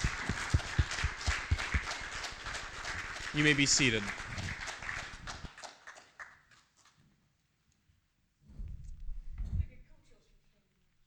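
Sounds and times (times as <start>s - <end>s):
audience applause for standing mothers: 0.0s - 6.4s
speech: 3.4s - 4.2s
soft regular thumps: 8.5s - 9.9s.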